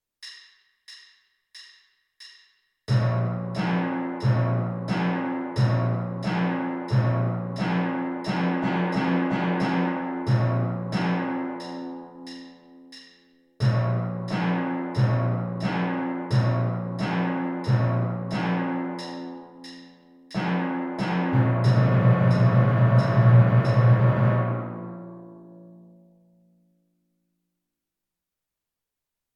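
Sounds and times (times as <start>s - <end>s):
timpani: 2.9s - 26.0s.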